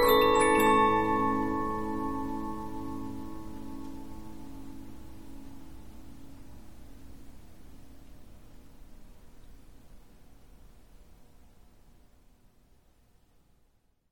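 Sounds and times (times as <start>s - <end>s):
15 inch Polyphon music box playing: 0.0s - 5.4s.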